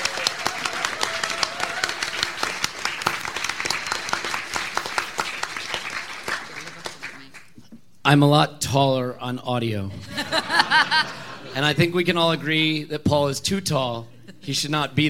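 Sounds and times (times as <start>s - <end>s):
audience clapping: 0.0s - 7.6s
speech: 8.1s - 15.0s
laughter: 9.9s - 12.5s, 14.2s - 14.8s.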